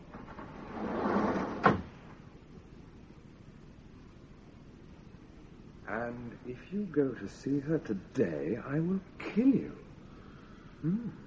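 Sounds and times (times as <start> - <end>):
automatic sliding door opening: 0.0 - 2.0
speech: 5.9 - 9.8, 10.8 - 11.2.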